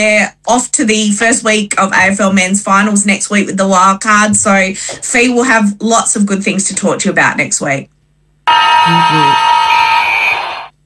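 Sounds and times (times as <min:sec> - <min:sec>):
speech: 0:00.0 - 0:09.6
full-time siren at football match: 0:08.5 - 0:10.8.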